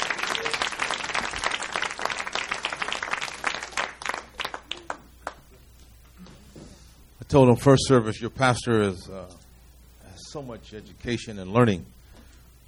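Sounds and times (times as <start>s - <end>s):
church congregation applauding a visiting pastor and his wife: 0.0s - 5.5s
speech: 7.3s - 9.4s, 10.3s - 12.0s.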